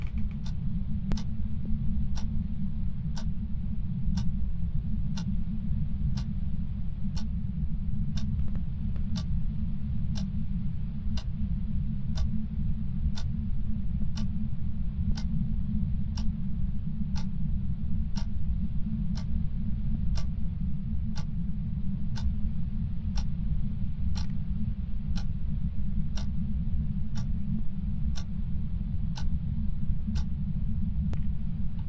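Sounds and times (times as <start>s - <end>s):
ambience: 0.0s - 31.8s.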